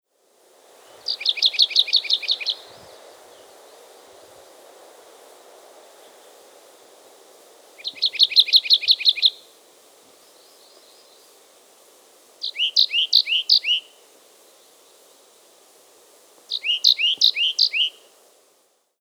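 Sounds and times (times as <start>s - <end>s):
bird song of high sharp two-part chirps: 0.8s - 3.9s, 7.8s - 9.5s, 12.4s - 15.1s, 16.5s - 18.1s.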